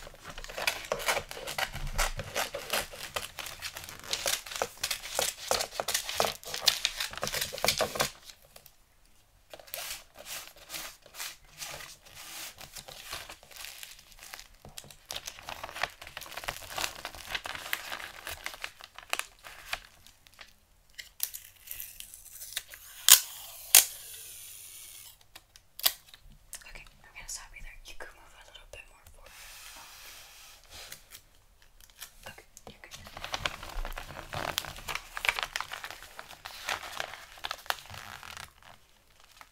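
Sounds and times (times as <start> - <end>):
Christmas gift wrapping paper crinkling: 0.0 - 8.7, 9.5 - 20.6, 30.6 - 39.5.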